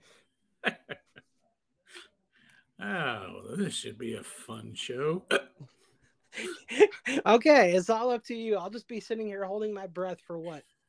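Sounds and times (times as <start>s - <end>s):
speech: 3.4s - 5.8s, 6.4s - 10.7s
person hiccuping: 5.3s - 5.7s.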